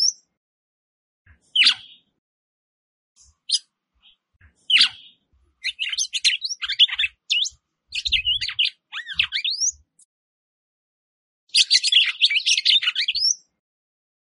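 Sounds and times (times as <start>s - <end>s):
Red-cowled Cardinal song: 0.0s - 0.3s, 1.3s - 2.1s, 3.2s - 10.1s, 11.5s - 13.6s.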